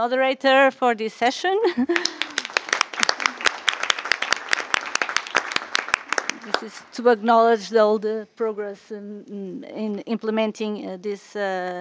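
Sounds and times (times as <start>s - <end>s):
speech: 0.0s - 2.3s, 6.5s - 11.7s
audience applause: 2.0s - 6.8s.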